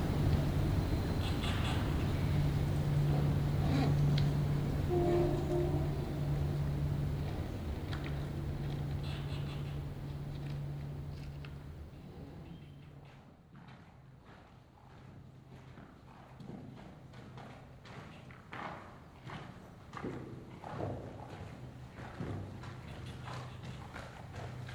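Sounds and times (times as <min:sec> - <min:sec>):
micro bats in a tunnel: 0:00.0 - 0:11.9.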